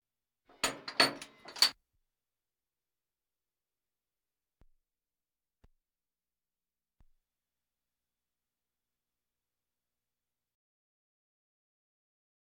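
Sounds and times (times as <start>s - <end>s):
military vehicles: 0.5s - 1.7s.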